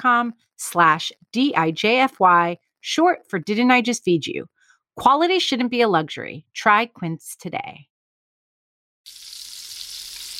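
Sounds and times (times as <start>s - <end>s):
speech: 0.0s - 7.9s
bacon frying in a pan: 9.1s - 10.3s.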